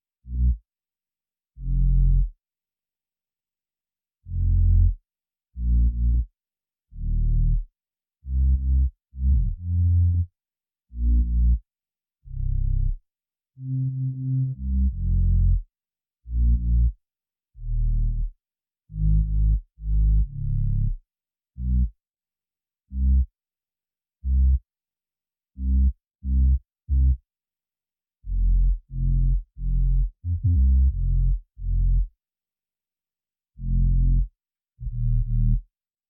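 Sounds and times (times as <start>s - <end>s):
bass: 0.2s - 0.6s, 1.6s - 2.4s, 4.2s - 5.0s, 5.6s - 6.3s, 6.9s - 10.3s, 10.9s - 11.6s, 12.2s - 13.0s, 13.6s - 17.0s, 17.6s - 21.0s, 21.6s - 22.0s, 22.9s - 23.3s, 24.2s - 24.6s, 25.6s - 27.2s, 28.2s - 32.2s, 33.6s - 35.7s.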